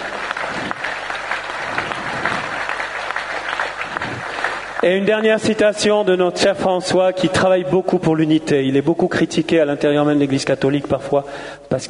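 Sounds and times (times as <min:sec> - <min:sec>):
room full of people applauding: 0:00.0 - 0:05.4
speech: 0:04.8 - 0:11.8.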